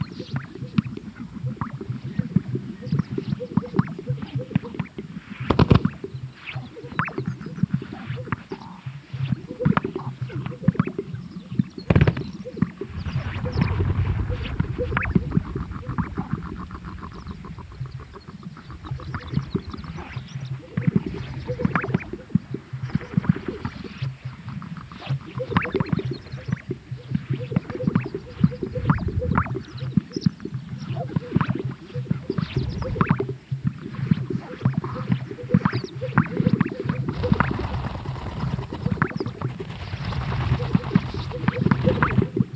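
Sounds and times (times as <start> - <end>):
greater sage-grouse popping calls: 0.0 - 42.5
rumbling background: 12.8 - 23.3, 26.4 - 30.2, 36.9 - 42.5.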